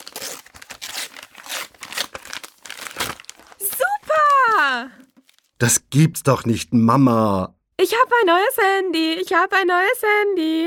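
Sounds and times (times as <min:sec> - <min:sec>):
gift wrapping paper crinkling: 0:00.0 - 0:05.6
speech: 0:04.7 - 0:05.0, 0:05.6 - 0:10.6.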